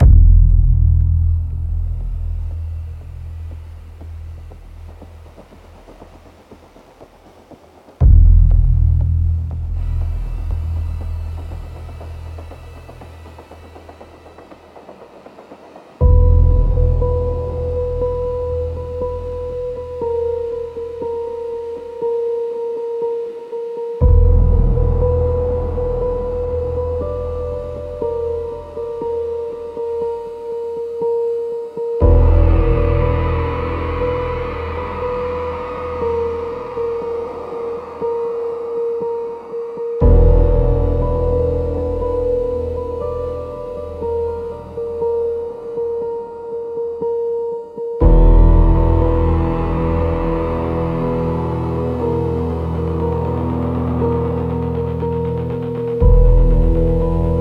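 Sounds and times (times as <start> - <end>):
subtle thriller ambience soundtrack: 0.0 - 57.3.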